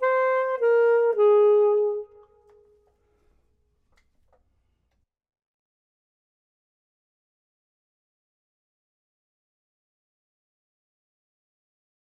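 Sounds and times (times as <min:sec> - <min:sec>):
clarinet: 0:00.0 - 0:03.0
saxophone: 0:00.0 - 0:03.0.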